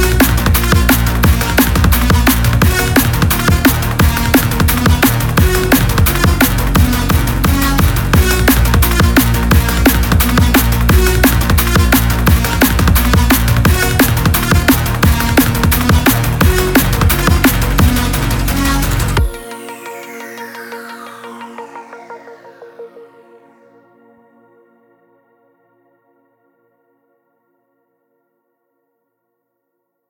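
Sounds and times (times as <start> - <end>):
foley bass drum: 0.0 - 19.4.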